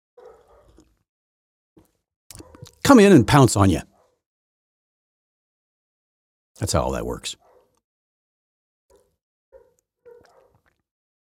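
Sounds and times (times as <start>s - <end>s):
dog barking: 0.2s - 0.9s, 2.4s - 2.8s, 3.9s - 4.2s, 7.4s - 7.8s, 8.9s - 10.7s
speech: 2.6s - 3.9s, 6.6s - 7.5s.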